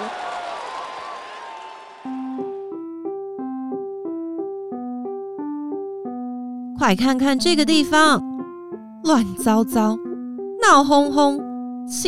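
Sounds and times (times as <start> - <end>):
applause: 0.0 - 2.6
speech: 6.8 - 8.2, 9.1 - 10.0, 10.6 - 12.0.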